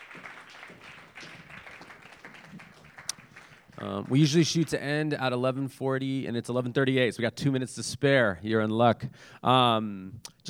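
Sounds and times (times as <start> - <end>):
crowd applauding: 0.0 - 5.0
speech: 3.8 - 10.4.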